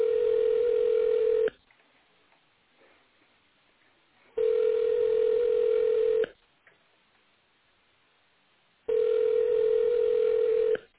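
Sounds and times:
telephone ringback tone: 0:00.0 - 0:01.5, 0:04.4 - 0:06.3, 0:08.9 - 0:10.9.

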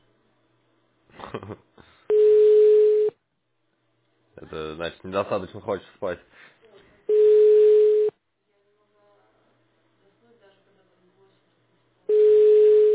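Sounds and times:
speech: 0:01.3 - 0:01.9, 0:04.4 - 0:06.6
ringback tone of an unanswered phone call: 0:02.1 - 0:03.1, 0:07.1 - 0:08.1, 0:12.1 - 0:12.9.

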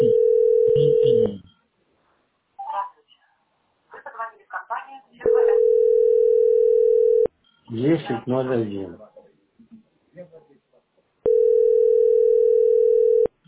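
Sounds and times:
telephone busy tone: 0:00.0 - 0:01.4, 0:05.2 - 0:07.3, 0:11.3 - 0:13.3
speech: 0:07.7 - 0:09.1.

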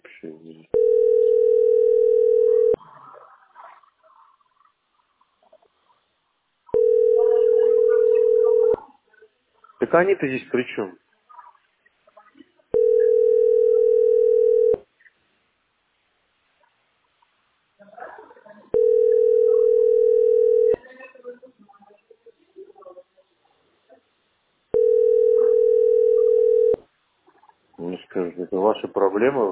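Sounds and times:
speech: 0:00.2 - 0:01.1, 0:09.9 - 0:11.1, 0:28.8 - 0:29.5
telephone ringback tones: 0:00.8 - 0:02.8, 0:06.7 - 0:08.8, 0:12.8 - 0:14.8, 0:18.8 - 0:20.8, 0:24.8 - 0:26.8.

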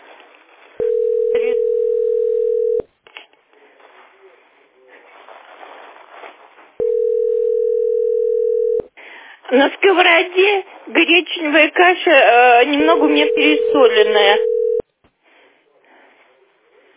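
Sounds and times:
telephone ringback tone: 0:00.8 - 0:02.8, 0:06.8 - 0:08.9, 0:12.8 - 0:14.8
speech: 0:09.5 - 0:14.5.

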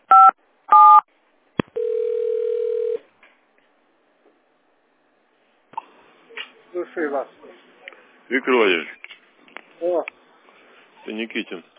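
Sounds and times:
telephone keypad dialing tones: 0:01.8 - 0:03.0
speech: 0:06.8 - 0:07.7, 0:08.3 - 0:09.0, 0:09.8 - 0:10.2, 0:11.1 - 0:11.7.

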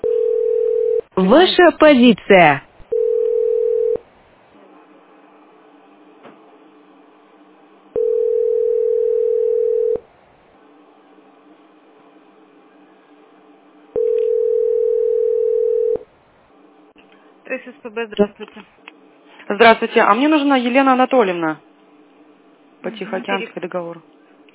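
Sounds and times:
telephone ringback tone: 0:00.0 - 0:01.0, 0:02.9 - 0:04.0, 0:08.0 - 0:10.0, 0:14.0 - 0:16.0
speech: 0:01.2 - 0:02.7, 0:17.9 - 0:18.9, 0:19.5 - 0:21.7, 0:22.8 - 0:24.1.

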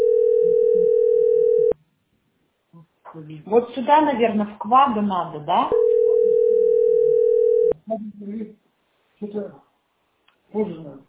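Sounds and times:
telephone dial tone: 0:00.0 - 0:01.8, 0:05.8 - 0:07.7
speech: 0:03.2 - 0:05.9, 0:07.9 - 0:08.6, 0:09.2 - 0:09.7, 0:10.5 - 0:11.0.

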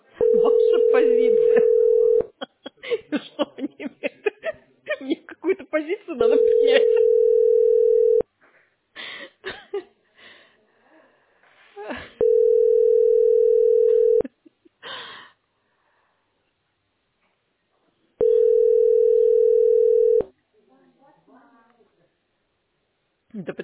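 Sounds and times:
telephone line tones of an unanswered call: 0:00.1 - 0:02.3, 0:06.2 - 0:08.2, 0:12.2 - 0:14.2, 0:18.2 - 0:20.3
laughter: 0:00.3 - 0:07.2.

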